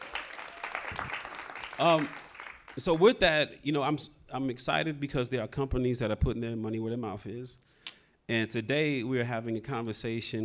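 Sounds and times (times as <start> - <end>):
audience applause: 0.0 - 2.8
speech: 1.8 - 2.2, 2.8 - 7.7, 8.3 - 10.4.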